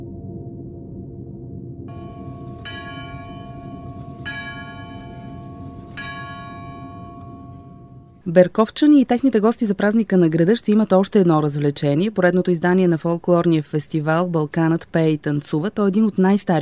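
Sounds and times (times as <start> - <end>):
constant low rumble of noise: 0.0 - 16.6
clock tower bell striking the hour: 1.9 - 8.2
speech: 8.2 - 16.6.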